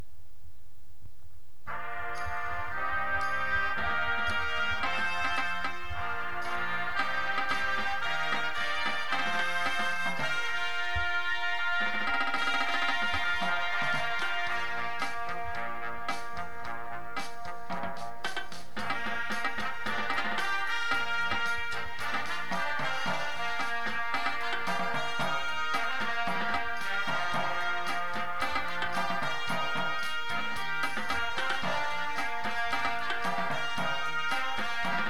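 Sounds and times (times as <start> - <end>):
tenor drums: 0.0 - 35.0
music: 1.6 - 35.0.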